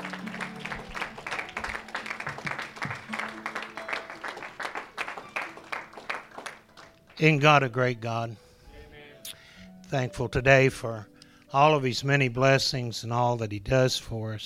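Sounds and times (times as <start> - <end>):
crowd clapping: 0.0 - 7.5
speech: 7.2 - 8.4, 9.9 - 14.4.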